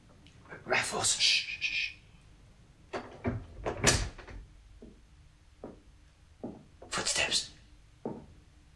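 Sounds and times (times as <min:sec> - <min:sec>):
speech: 0:00.9 - 0:01.8
door unlocked and opened: 0:02.9 - 0:04.5
faint knocks: 0:02.9 - 0:07.0, 0:08.0 - 0:08.4.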